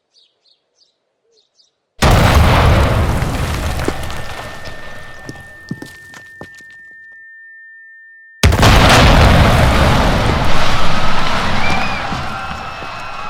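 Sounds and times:
large bomb explosion: 0:02.0 - 0:05.0, 0:08.4 - 0:13.2.

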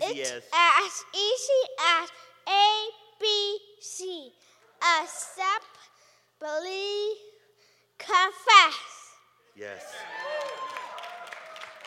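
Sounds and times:
speech: 0:00.2 - 0:05.8, 0:06.4 - 0:07.3, 0:08.0 - 0:08.9, 0:09.6 - 0:10.8
audience clapping: 0:09.8 - 0:11.8.

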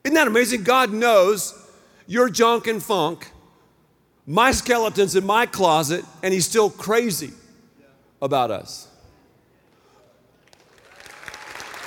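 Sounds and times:
speech: 0:00.1 - 0:03.4, 0:04.3 - 0:07.4, 0:08.2 - 0:08.9
audience clapping: 0:10.4 - 0:11.8.

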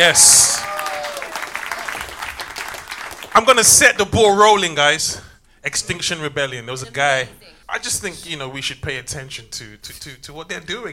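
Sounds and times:
speech: 0:00.0 - 0:00.7, 0:03.4 - 0:10.9
audience applause: 0:00.0 - 0:03.5.

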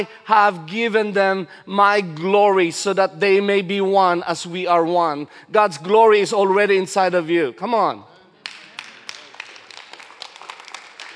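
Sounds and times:
speech: 0:00.0 - 0:08.1
audience clapping: 0:08.4 - 0:11.1.

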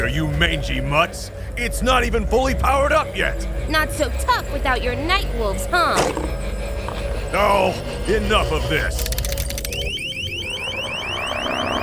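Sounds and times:
speech: 0:00.0 - 0:06.4, 0:07.3 - 0:09.2
low rumbling hum: 0:00.0 - 0:10.0
sonic weapon piercing electronic shriek: 0:06.4 - 0:11.8.

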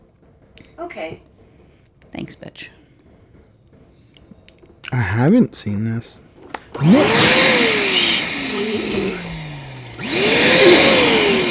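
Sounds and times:
speech: 0:00.8 - 0:01.3, 0:02.2 - 0:02.8, 0:04.9 - 0:07.6
vacuum cleaner running: 0:06.5 - 0:11.4.

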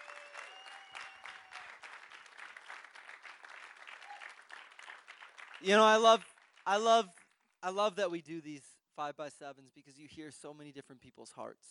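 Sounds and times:
audience applause: 0:00.0 - 0:06.8
speech: 0:05.6 - 0:11.6.

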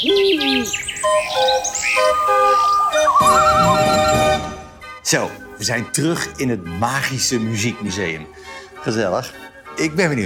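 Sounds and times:
speech: 0:00.0 - 0:03.8, 0:05.1 - 0:10.2
mechanical singing bird automaton: 0:00.0 - 0:04.4.

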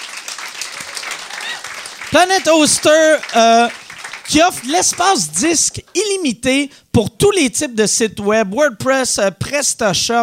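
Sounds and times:
audience applause: 0:00.0 - 0:05.9
speech: 0:02.1 - 0:10.2.

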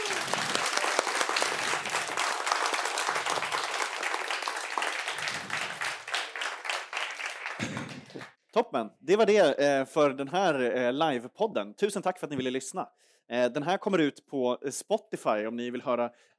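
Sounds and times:
live audience applause at live podcast: 0:00.0 - 0:08.3
speech: 0:08.6 - 0:16.3.

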